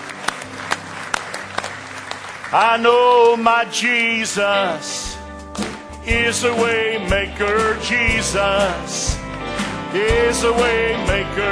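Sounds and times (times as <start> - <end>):
church congregation clapping during a service: 0.0 - 4.9
speech: 2.5 - 5.2, 6.1 - 9.2, 9.9 - 11.4.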